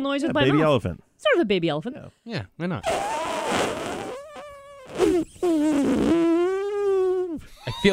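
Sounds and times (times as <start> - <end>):
speech: 0.0 - 3.9, 7.4 - 7.9
deflating balloon flying around the room: 2.8 - 7.9.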